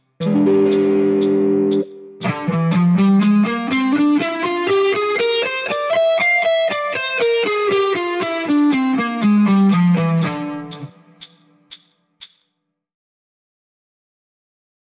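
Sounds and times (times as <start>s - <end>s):
guitar playing: 0.0s - 11.4s.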